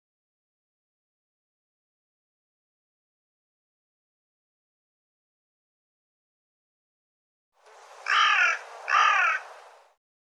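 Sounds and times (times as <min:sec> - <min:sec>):
bird cawing: 0:07.7 - 0:10.0.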